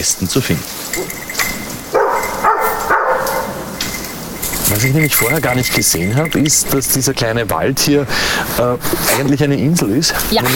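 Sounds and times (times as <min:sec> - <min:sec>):
speech: 0:00.0 - 0:01.5, 0:04.6 - 0:10.5
dog yipping: 0:01.0 - 0:04.4
search dog barking during training: 0:01.9 - 0:04.0.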